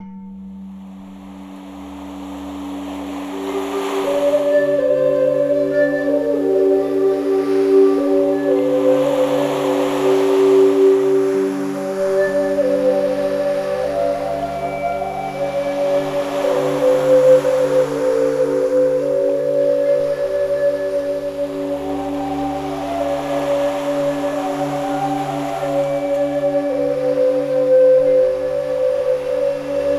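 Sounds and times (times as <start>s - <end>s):
285 Hz tone: 0.0s - 29.9s.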